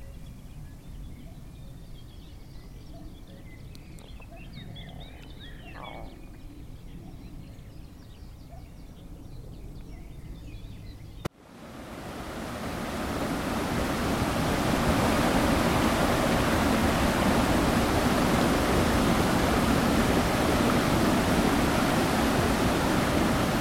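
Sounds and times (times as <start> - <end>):
ambience: 11.5 - 23.5.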